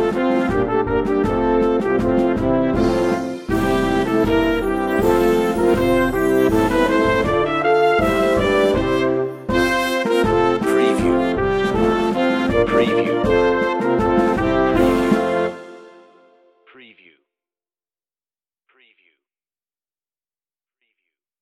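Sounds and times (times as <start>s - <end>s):
brass band playing a Christmas carol: 0.0s - 16.4s.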